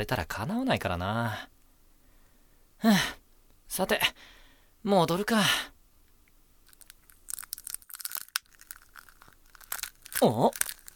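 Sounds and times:
speech: 0.0 - 1.6, 2.8 - 5.7, 10.2 - 10.7
egg cracking open as it hatches: 6.6 - 10.9.

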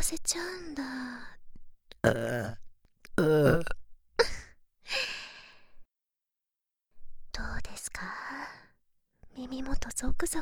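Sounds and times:
speech: 0.0 - 1.4, 2.0 - 2.6, 3.2 - 4.3, 7.4 - 8.6, 9.4 - 10.4
person burping: 2.0 - 2.6, 3.2 - 3.8.

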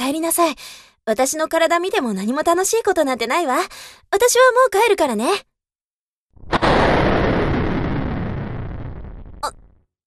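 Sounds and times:
speech: 0.1 - 5.5, 9.4 - 9.6
thunderclap causing a power outage: 6.4 - 9.8.

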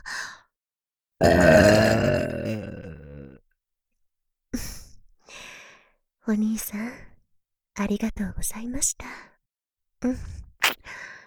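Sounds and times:
speech: 1.2 - 1.6, 7.8 - 9.3, 10.0 - 10.5
burp: 1.2 - 3.4.

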